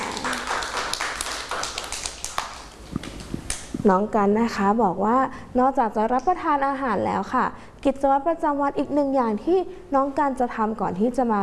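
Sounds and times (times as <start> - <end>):
children clapping hands: 0.0 - 3.7
speech: 3.8 - 11.4.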